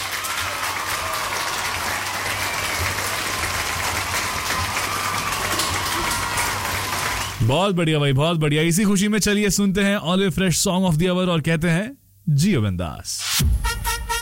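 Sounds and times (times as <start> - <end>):
applause: 0.0 - 7.6
speech: 7.4 - 13.6.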